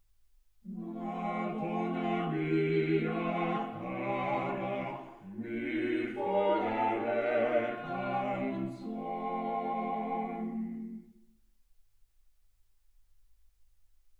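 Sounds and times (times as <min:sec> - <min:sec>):
quartet playing: 0:00.7 - 0:10.9.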